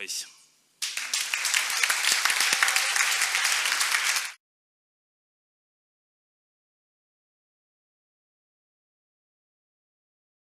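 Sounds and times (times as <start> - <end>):
speech: 0.0 - 0.4
audience applause: 0.8 - 4.4.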